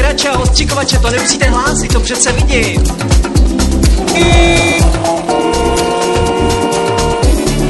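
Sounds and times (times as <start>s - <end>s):
speech: 0.2s - 3.3s, 4.2s - 5.3s
car horn honking: 4.1s - 7.5s.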